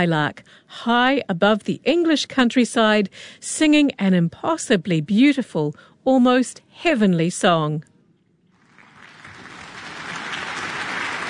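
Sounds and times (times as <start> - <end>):
speech: 0.0 - 7.9
concert audience applause: 8.6 - 11.2.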